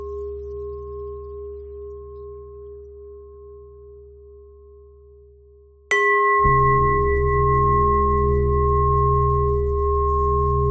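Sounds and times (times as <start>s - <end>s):
bells ringing: 5.9s - 10.6s.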